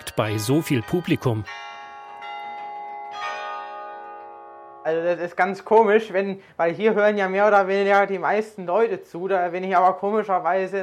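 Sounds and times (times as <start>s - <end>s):
carillon bells playing in tower: 0.0s - 5.0s
speech: 0.2s - 1.6s, 4.8s - 10.8s.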